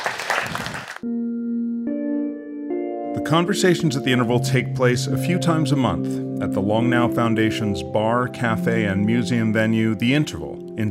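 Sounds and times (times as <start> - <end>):
audience applause: 0.0 - 1.0
speech: 1.0 - 1.4, 3.2 - 10.8
sustained musical tones: 1.0 - 10.8.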